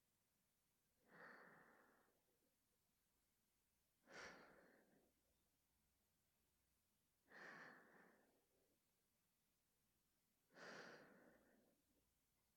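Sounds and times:
breathing: 0:01.0 - 0:02.2, 0:04.0 - 0:05.2, 0:07.2 - 0:08.5, 0:10.5 - 0:11.8.

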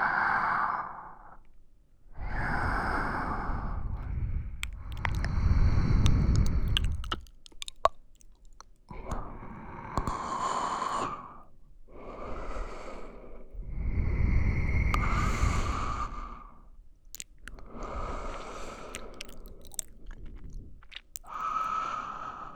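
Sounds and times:
sleeping breath in both ears: 0:02.1 - 0:07.2, 0:08.9 - 0:16.8, 0:17.4 - 0:22.5
wet squishing sounds: 0:04.5 - 0:09.0, 0:17.0 - 0:22.5.

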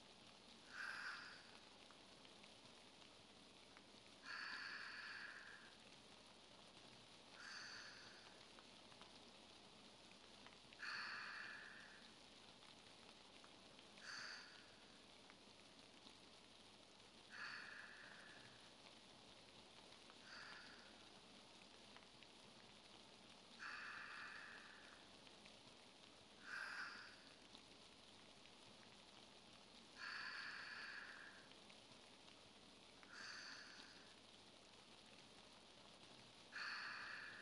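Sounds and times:
person breathing in sleep: 0:00.7 - 0:01.6, 0:04.3 - 0:05.7, 0:07.3 - 0:08.5, 0:10.8 - 0:12.1, 0:14.0 - 0:14.9, 0:17.3 - 0:18.6, 0:20.2 - 0:21.1, 0:23.6 - 0:25.1, 0:26.4 - 0:27.3, 0:30.0 - 0:31.5, 0:33.1 - 0:34.2, 0:36.5 - 0:37.4.

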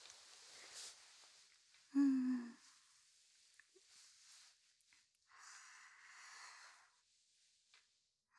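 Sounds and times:
sleeping breathing on the left channel: 0:00.0 - 0:04.6, 0:05.4 - 0:06.9.

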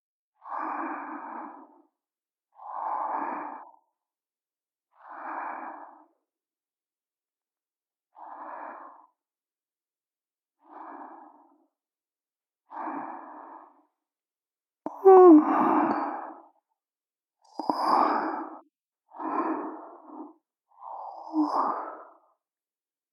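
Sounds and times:
student breathing in sleep: 0:00.4 - 0:01.9, 0:02.5 - 0:03.8, 0:04.9 - 0:06.2, 0:08.1 - 0:09.2, 0:10.6 - 0:11.6, 0:12.7 - 0:13.9, 0:15.0 - 0:16.6, 0:17.5 - 0:22.3.

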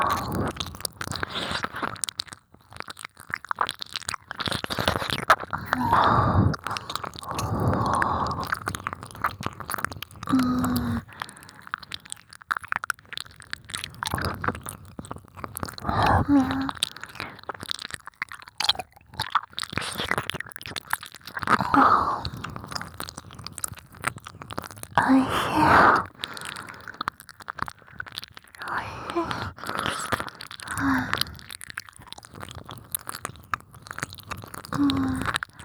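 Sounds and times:
ASMR ear licking: 0:00.0 - 0:35.6.

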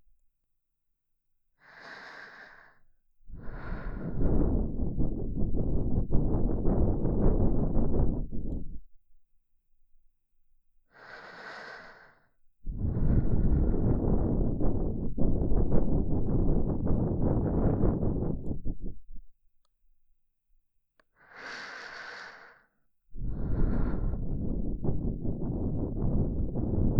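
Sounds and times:
person breathing in the left ear: 0:01.6 - 0:08.8, 0:10.9 - 0:19.0, 0:21.2 - 0:26.9.

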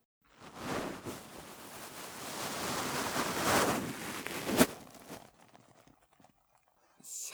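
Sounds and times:
ASMR ear cleaning in left ear: 0:00.4 - 0:05.9.

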